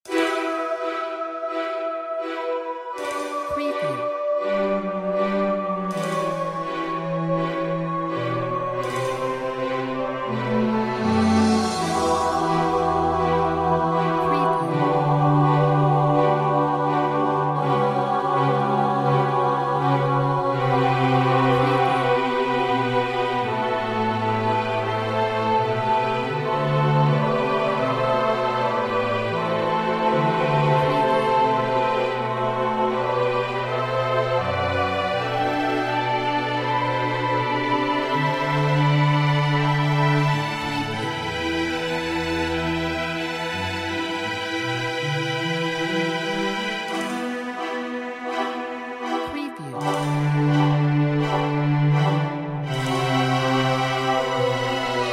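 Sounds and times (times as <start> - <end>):
big dramatic music: 0.0 - 55.1.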